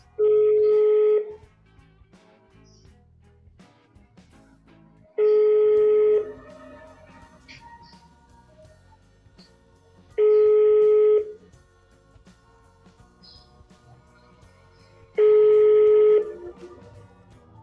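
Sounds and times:
ringback tone of an outgoing phone call: 0.2s - 1.3s, 5.2s - 6.4s, 10.2s - 11.4s, 15.2s - 16.6s.

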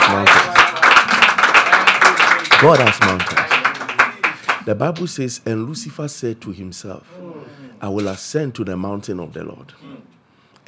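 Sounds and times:
audience clapping: 0.0s - 5.1s
speech: 2.6s - 3.5s, 4.7s - 10.6s.

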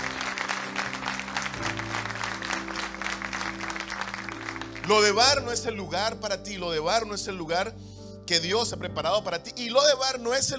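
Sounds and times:
audience applauding: 0.0s - 5.4s
speech: 4.9s - 10.5s.

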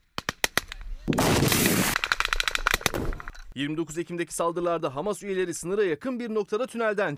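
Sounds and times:
gunfire in attack footage: 0.2s - 3.3s
speech: 3.6s - 7.1s.

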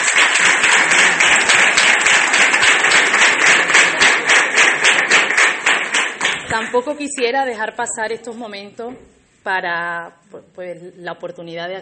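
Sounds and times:
audience applause: 0.0s - 6.7s
speech: 6.6s - 11.7s.

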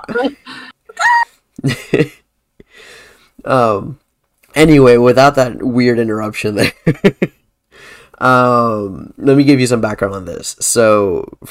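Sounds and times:
speech: 0.0s - 0.6s, 3.5s - 4.0s, 4.6s - 7.2s, 8.2s - 11.4s
person imitating a chicken: 0.9s - 1.3s.

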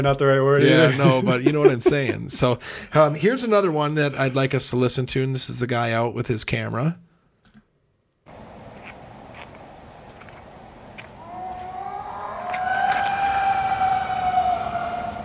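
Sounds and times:
speech: 0.0s - 7.0s
laughter: 0.6s - 3.3s
coyote howling: 11.2s - 15.2s.

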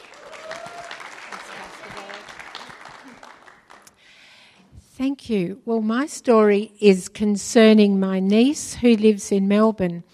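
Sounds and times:
church audience applause welcoming a speaker: 0.0s - 4.0s
speech: 5.0s - 10.1s.

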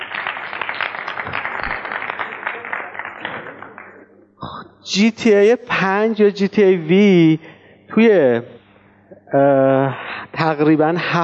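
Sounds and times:
crowd applauding: 0.0s - 4.2s
speech: 4.9s - 8.6s, 9.3s - 11.2s.

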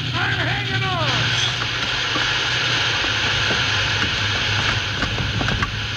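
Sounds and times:
steam locomotive slowing down in reverse: 0.0s - 5.9s
faint metallic clicks and clanks: 1.2s - 5.9s.

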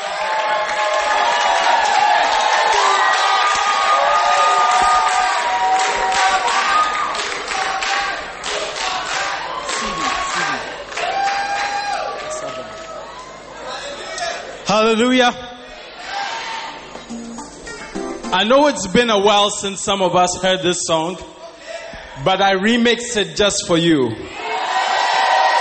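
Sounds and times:
concert crowd clapping, cheering and whooping to welcome a gospel duo: 0.0s - 13.6s, 24.6s - 25.5s
speech: 14.9s - 15.5s, 18.3s - 21.4s, 22.2s - 24.4s.

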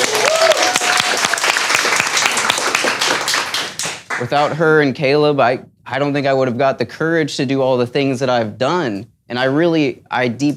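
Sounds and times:
crowd applauding: 0.0s - 4.6s
speech: 4.3s - 10.5s.

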